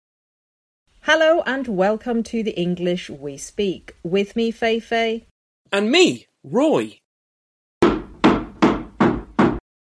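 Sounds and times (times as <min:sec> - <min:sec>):
speech: 0:01.1 - 0:07.0
hammer hitting a table: 0:07.8 - 0:09.6.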